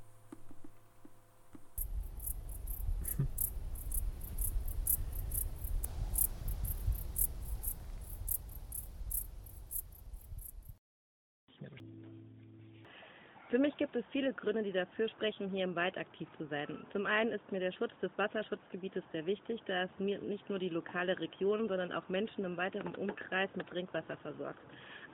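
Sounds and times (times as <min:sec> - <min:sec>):
crickets chirping in woodland: 0:01.6 - 0:10.8
low rumbling background: 0:01.8 - 0:10.7
speech: 0:13.6 - 0:25.1.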